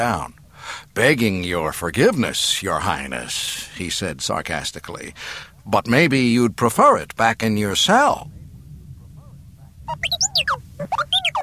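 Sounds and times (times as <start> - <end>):
speech: 0.0 - 8.4, 9.9 - 10.2
robot droid beeping and whistling: 9.9 - 11.4.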